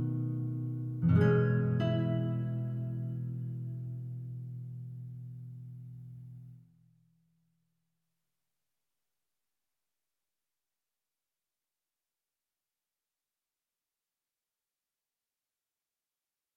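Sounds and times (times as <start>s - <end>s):
guitar: 0.0s - 6.7s.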